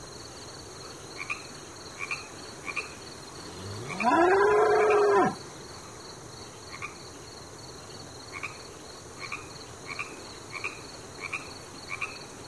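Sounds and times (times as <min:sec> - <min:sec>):
animals at a riverside: 0:03.4 - 0:05.4.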